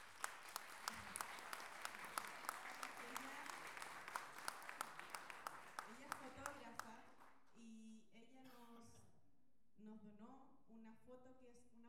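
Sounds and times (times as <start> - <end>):
applause: 0.0 - 7.6.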